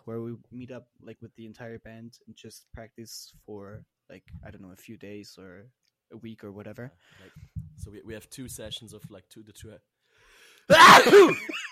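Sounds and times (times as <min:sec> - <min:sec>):
speech: 0:00.1 - 0:10.0, 0:10.7 - 0:11.7
person sneezing: 0:10.7 - 0:11.5.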